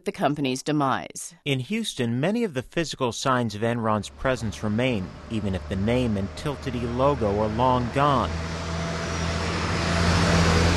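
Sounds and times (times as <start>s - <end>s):
speech: 0.0s - 8.6s
cars driving along a downtown street in Houston: 3.5s - 10.7s.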